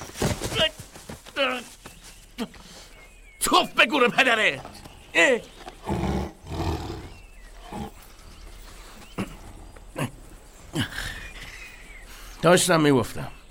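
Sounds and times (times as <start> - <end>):
speech: 1.4 - 1.8, 2.4 - 2.8, 3.6 - 5.5, 12.4 - 13.4
tiger roaring: 5.8 - 8.0.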